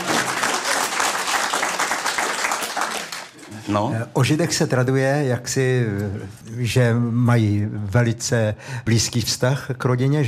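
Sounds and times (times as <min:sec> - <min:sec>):
audience applause: 0:00.0 - 0:03.4
speech: 0:03.7 - 0:10.2.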